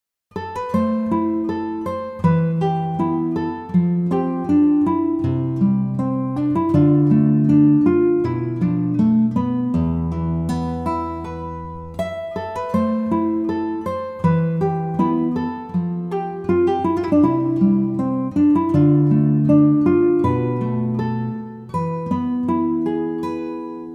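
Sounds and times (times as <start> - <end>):
guitar in a minor key: 0.3 - 23.9.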